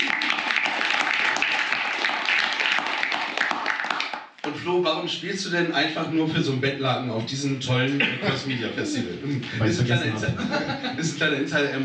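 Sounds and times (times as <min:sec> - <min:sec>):
audience applause: 0:00.0 - 0:04.3
speech: 0:04.6 - 0:11.8
laughter: 0:08.0 - 0:11.5.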